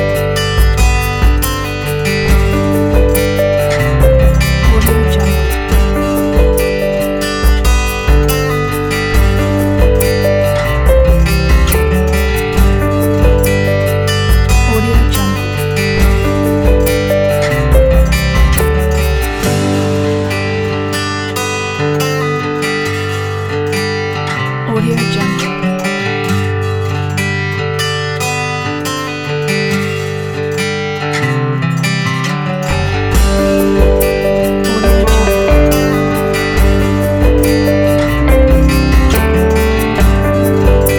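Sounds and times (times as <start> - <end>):
warm uplifting acoustic folk music: 0.0 - 40.9.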